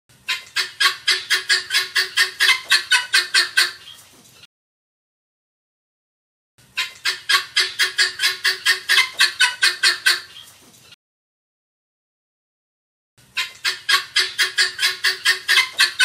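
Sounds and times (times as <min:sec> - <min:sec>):
helmeted guineafowl scratchy metallic calls: 0:00.2 - 0:04.4, 0:06.7 - 0:10.9, 0:13.3 - 0:16.0.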